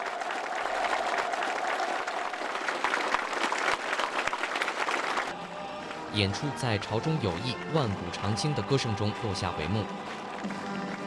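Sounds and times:
audience applause after a performance: 0.0s - 5.4s, 10.1s - 11.0s
speech: 6.1s - 10.7s.

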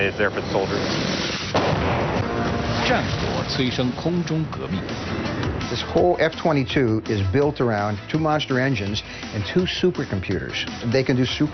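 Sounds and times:
speech: 0.1s - 11.5s
Apache helicopter 30mm cannon fire: 0.8s - 3.9s.

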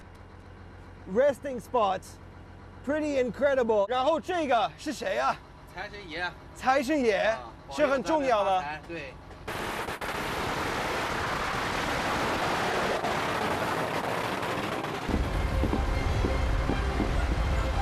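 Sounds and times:
speech: 1.0s - 2.2s, 2.8s - 9.6s
barrage of firecrackers crackling: 9.5s - 17.0s
deep rumble: 10.2s - 17.8s
faint tonal hum: 15.1s - 17.8s.

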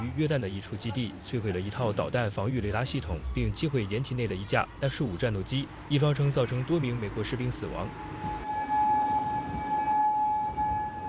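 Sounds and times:
speech: 0.1s - 8.4s
air raid siren wailing: 7.5s - 11.0s.

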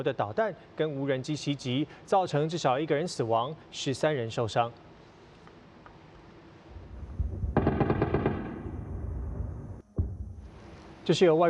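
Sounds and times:
speech: 0.0s - 4.9s, 11.1s - 11.4s
dense anti-aircraft gunfire at night: 6.8s - 9.3s.

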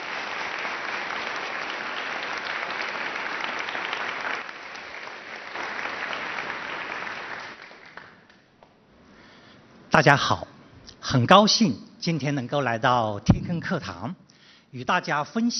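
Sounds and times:
audience applause: 0.0s - 8.4s
speech: 10.0s - 10.5s, 11.1s - 15.5s.

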